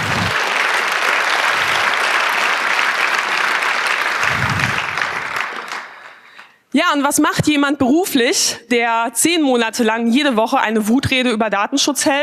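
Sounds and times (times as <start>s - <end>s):
audience applause: 0.0s - 6.6s
speech: 6.8s - 12.2s.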